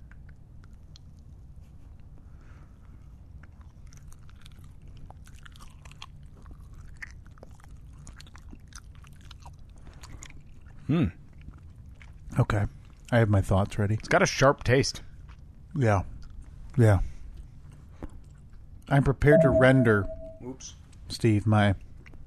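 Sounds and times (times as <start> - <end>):
person chewing a crisp thin mint cookie: 0.0 - 2.2, 3.1 - 13.1, 15.1 - 16.5
low hum: 0.0 - 22.2
speech: 10.9 - 11.2, 12.4 - 15.1, 15.8 - 16.1, 16.8 - 17.1, 18.9 - 21.8.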